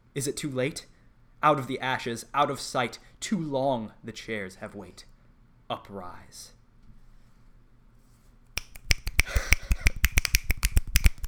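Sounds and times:
speech: 0.2 - 5.1, 5.7 - 6.6
several people finger snapping: 8.6 - 11.2.

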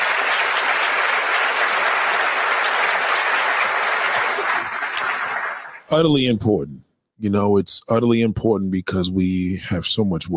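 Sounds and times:
crowd applauding: 0.0 - 6.0
speech: 5.9 - 10.3.

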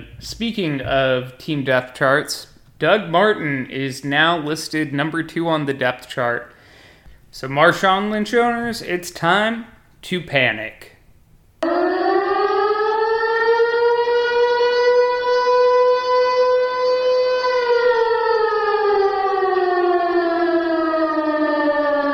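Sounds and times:
speech: 0.0 - 6.5, 7.3 - 10.9
panic alarm siren: 11.6 - 22.1.

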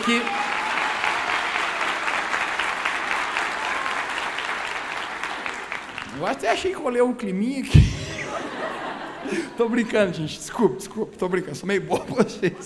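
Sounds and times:
speech: 0.0 - 0.4, 6.2 - 8.0, 9.2 - 12.6
audience applause: 0.0 - 6.6
laughter: 7.7 - 10.1, 11.8 - 12.6.

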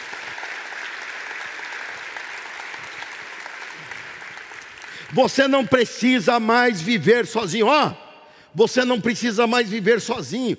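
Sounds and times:
audience applause: 0.0 - 5.2
speech: 5.1 - 10.5.

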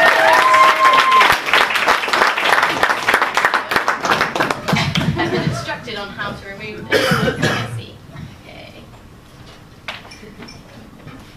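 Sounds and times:
whistle or cheer: 0.0 - 1.4
crowd applauding: 0.0 - 5.6
laughter: 4.6 - 6.0.

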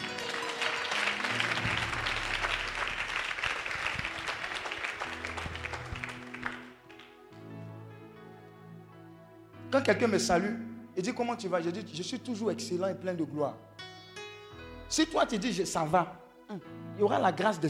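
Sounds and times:
sustained musical tones: 0.0 - 6.4
audience applauding at a church sermon: 0.0 - 7.2
speech: 9.8 - 13.7, 14.9 - 17.6.

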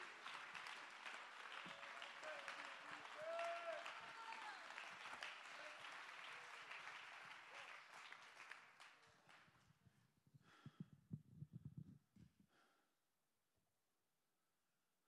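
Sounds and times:
audience clapping hands: 0.0 - 10.8.

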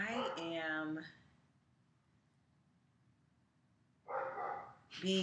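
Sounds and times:
pet dog barking: 0.1 - 0.5, 4.1 - 4.8
speech: 5.0 - 5.2.

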